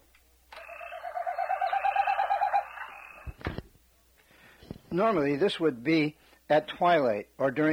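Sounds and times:
common snipe winnowing whistle: 0:00.6 - 0:03.3
speech: 0:04.9 - 0:07.7.

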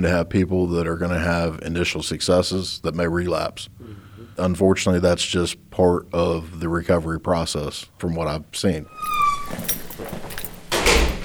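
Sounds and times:
speech: 0:00.0 - 0:09.8
heavy door at RSW swinging open and clanging shut: 0:09.0 - 0:11.2.

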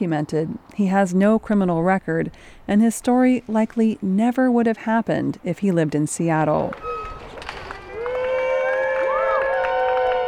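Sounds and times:
speech: 0:00.0 - 0:07.1
families cheering as detainees walk out: 0:07.7 - 0:10.2.

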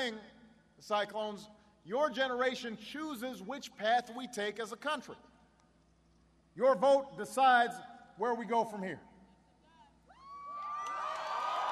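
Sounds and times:
speech: 0:00.0 - 0:05.3, 0:06.6 - 0:09.1
supporters cheering and whooping at an Obama rally: 0:10.1 - 0:11.7.

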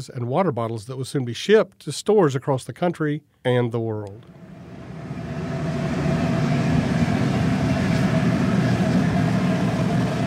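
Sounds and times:
speech: 0:00.0 - 0:04.5
roar of natural gas burning in glass furnaces: 0:04.3 - 0:10.2.

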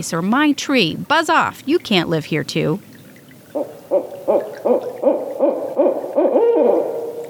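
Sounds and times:
speech: 0:00.0 - 0:02.9
barred owl hooting: 0:03.6 - 0:07.2.

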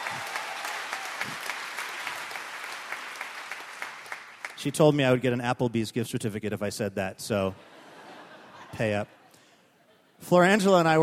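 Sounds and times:
audience applause: 0:00.0 - 0:04.6
speech: 0:04.6 - 0:07.7, 0:08.7 - 0:09.2, 0:10.2 - 0:11.0
laughter: 0:07.5 - 0:10.2.

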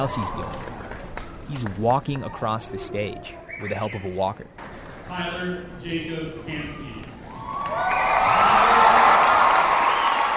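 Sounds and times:
speech: 0:00.0 - 0:00.7, 0:01.5 - 0:07.1
audience cheering at graduation: 0:00.0 - 0:02.7, 0:07.2 - 0:10.3
shouts and whoops: 0:07.3 - 0:10.3.

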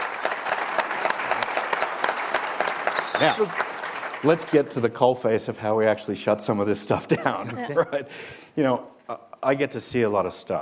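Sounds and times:
audience applause at a talk: 0:00.0 - 0:05.0
speech: 0:03.2 - 0:03.6, 0:04.2 - 0:10.5.

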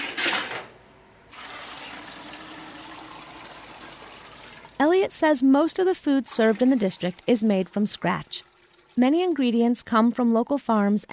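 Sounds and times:
running water in the kitchen at Decorah High School in Northeast Iowa: 0:01.3 - 0:04.9, 0:06.1 - 0:09.7
speech: 0:04.8 - 0:11.1.

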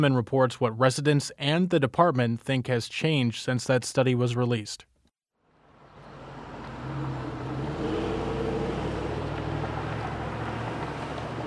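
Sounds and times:
speech: 0:00.0 - 0:04.9
street traffic rumbling at an intersection: 0:05.5 - 0:11.4.

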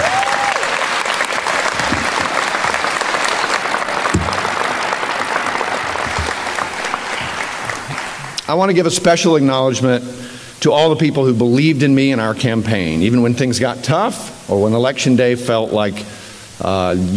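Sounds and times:
audience applause: 0:00.0 - 0:08.6
speech: 0:08.5 - 0:17.1.

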